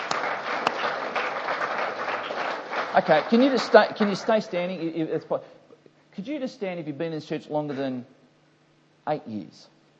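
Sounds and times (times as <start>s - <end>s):
audience clapping: 0.0s - 4.9s
speech: 2.9s - 5.6s, 6.2s - 8.2s, 9.0s - 9.7s.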